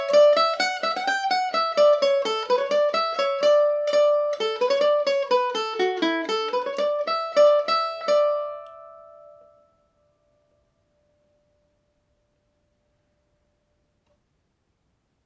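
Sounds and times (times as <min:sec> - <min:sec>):
mandolin in D major: 0:00.0 - 0:11.9.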